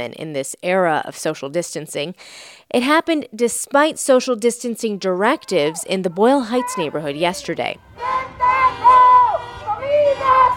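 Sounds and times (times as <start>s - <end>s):
speech: 0.0s - 8.8s
street protest demonstrators shouting: 5.2s - 10.5s
crowd murmur: 5.5s - 10.5s.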